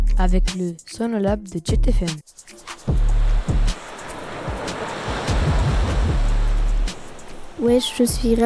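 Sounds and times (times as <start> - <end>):
speech: 0.2 - 2.5, 7.6 - 8.4
sea waves washing against the shore: 2.4 - 8.4
wind buffeting the microphone: 2.8 - 8.4.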